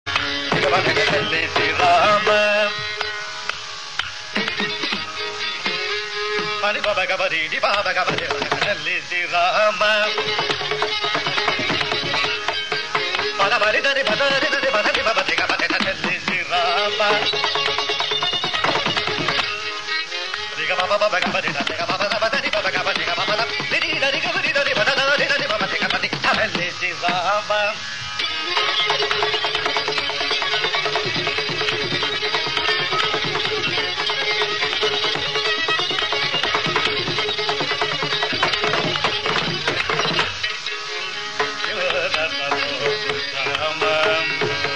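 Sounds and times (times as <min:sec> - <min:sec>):
swarakalpana improvisation in raga poornachandrika: 0:00.1 - 0:44.7.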